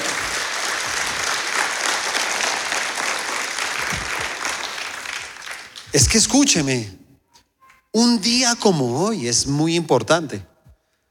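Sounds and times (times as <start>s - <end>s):
audience applause: 0.0s - 6.5s
speech: 6.0s - 7.0s, 8.0s - 10.5s.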